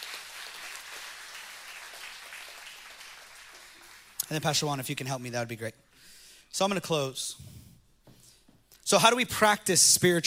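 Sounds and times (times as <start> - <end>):
audience applause: 0.0 - 4.2
speech: 4.3 - 5.8, 6.5 - 7.6, 8.9 - 10.2.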